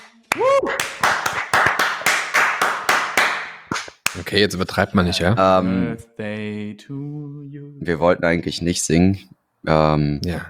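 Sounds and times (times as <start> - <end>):
applause: 0.8 - 4.2
speech: 4.3 - 10.4.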